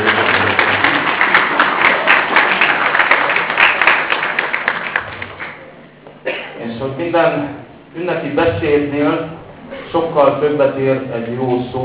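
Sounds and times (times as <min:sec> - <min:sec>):
audience applause: 0:00.0 - 0:05.6
speech: 0:07.0 - 0:11.8.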